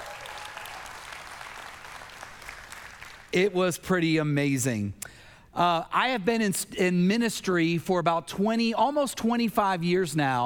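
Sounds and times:
audience applause: 0:00.0 - 0:03.3
speech: 0:03.3 - 0:10.4.

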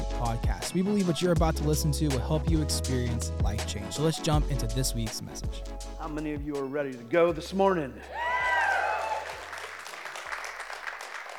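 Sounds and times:
speech: 0:00.3 - 0:08.3
audience cheering and whooping: 0:08.0 - 0:10.0
audience clapping: 0:08.1 - 0:11.3.

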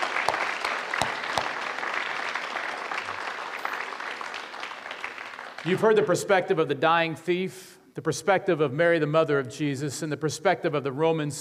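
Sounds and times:
audience clapping: 0:00.0 - 0:06.6
speech: 0:05.6 - 0:11.3.

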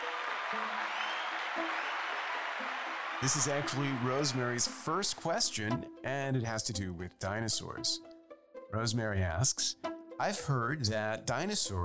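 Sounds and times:
audience round of applause: 0:00.0 - 0:04.8
speech: 0:03.2 - 0:08.1, 0:08.7 - 0:11.8.

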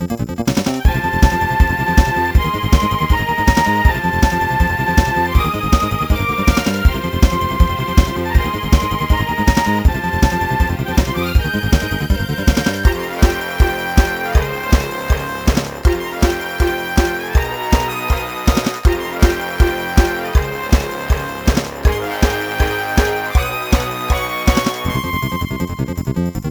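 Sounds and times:
mini boss game music: 0:00.2 - 0:26.4.

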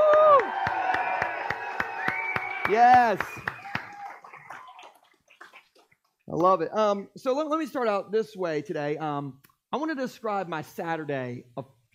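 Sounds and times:
audience cheering and clapping: 0:00.0 - 0:05.2
speech: 0:02.7 - 0:03.5, 0:06.3 - 0:11.8.

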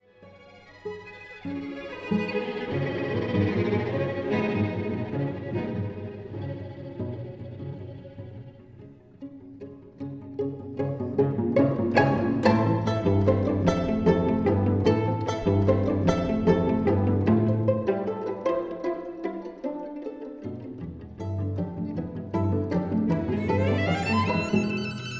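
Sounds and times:
string quartet playing: 0:00.0 - 0:25.1.

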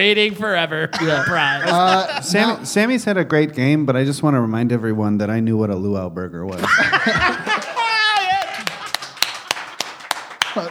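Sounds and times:
speech: 0:00.0 - 0:07.4
laughter: 0:00.5 - 0:03.1, 0:06.5 - 0:10.7
audience applause: 0:07.0 - 0:10.7
whooping warbling voice: 0:07.6 - 0:08.8.

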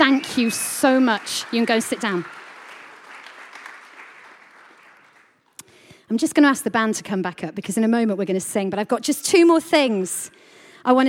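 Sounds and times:
speech: 0:00.0 - 0:02.4, 0:06.1 - 0:11.0
round of applause: 0:00.0 - 0:05.5.

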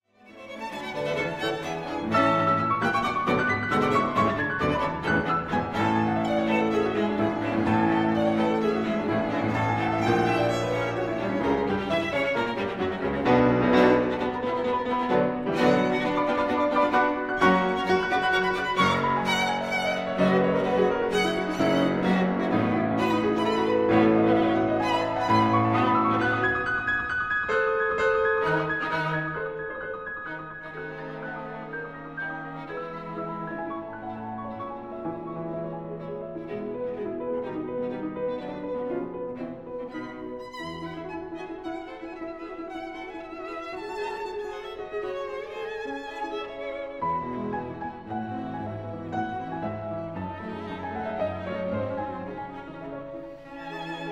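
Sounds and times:
piano quintet playing: 0:00.2 - 0:54.1.

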